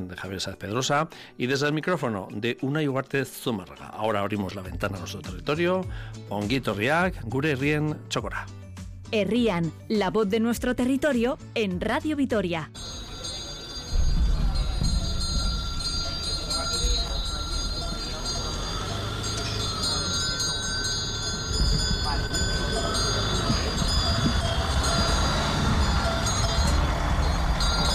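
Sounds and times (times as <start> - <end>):
speech: 0.0 - 13.0
car traffic at the fair in the cuadrilla de Añana: 12.8 - 27.9
livestock cowbells at the Alubia Pinta Alavesa fair in Añana: 12.8 - 27.9.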